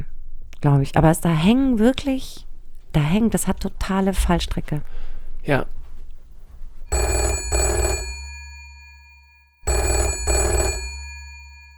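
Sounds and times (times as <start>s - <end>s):
speech: 0.6s - 5.8s
telephone double-rings with an incoming call: 6.9s - 11.7s.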